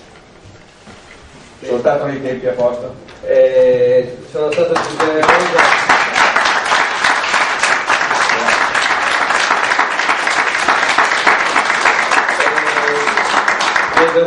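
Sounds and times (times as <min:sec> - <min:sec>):
speech: 0:01.6 - 0:06.1
applause in a council chamber: 0:04.5 - 0:14.2.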